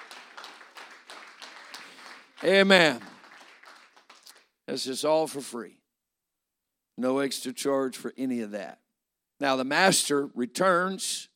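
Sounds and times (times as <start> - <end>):
church congregation clapping their hands in praise: 0.0 - 4.8
speech: 2.4 - 3.1, 4.7 - 5.8, 7.0 - 8.8, 9.4 - 11.3.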